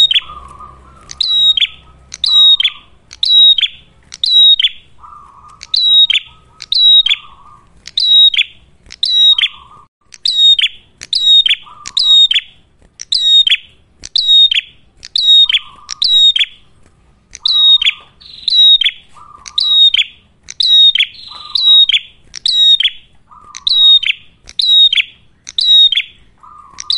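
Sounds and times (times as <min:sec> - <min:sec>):
ashy tailorbird whistling: 0:00.0 - 0:16.7, 0:17.3 - 0:26.9.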